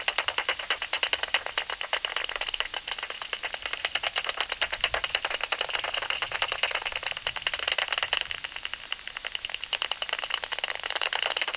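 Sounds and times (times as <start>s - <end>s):
bat echolocation calls as rattling clicks: 0.0s - 11.5s.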